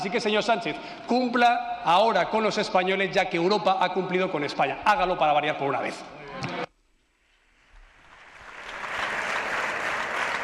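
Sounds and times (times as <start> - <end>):
speech: 0.0 - 6.6
Partido Popular members applauding: 8.0 - 10.4.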